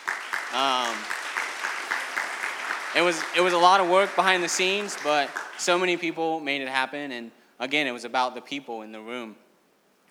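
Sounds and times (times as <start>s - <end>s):
audience applause: 0.0s - 6.0s
speech: 0.5s - 1.2s, 3.0s - 9.4s.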